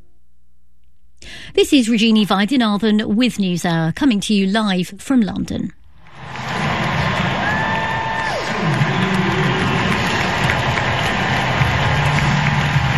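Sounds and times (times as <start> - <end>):
speech: 1.4 - 5.8
crowd cheering at tennis match at the US Open: 6.0 - 12.9.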